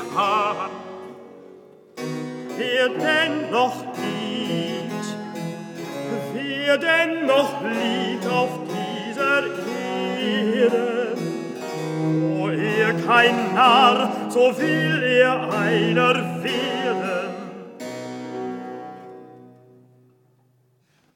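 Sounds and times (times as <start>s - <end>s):
recitative singing: 0.0s - 1.3s, 2.5s - 17.8s.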